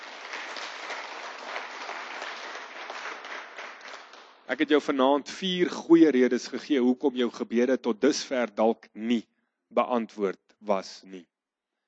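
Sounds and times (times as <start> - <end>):
audience applause: 0.0 - 4.4
speech: 4.5 - 11.3.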